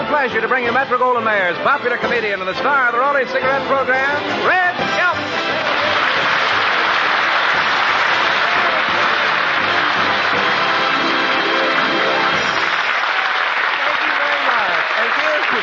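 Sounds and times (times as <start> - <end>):
speech: 0.1 - 4.8
large studio audience and cast applauding: 5.0 - 15.6.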